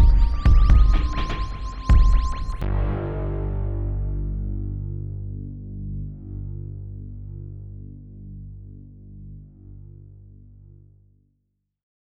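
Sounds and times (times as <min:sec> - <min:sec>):
spooky music loop: 0:00.0 - 0:09.7.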